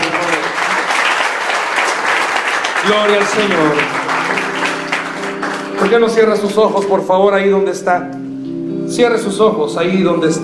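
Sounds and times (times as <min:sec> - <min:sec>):
audience applause: 0:00.0 - 0:06.8
speech: 0:02.9 - 0:04.0, 0:05.8 - 0:08.2, 0:08.9 - 0:10.4.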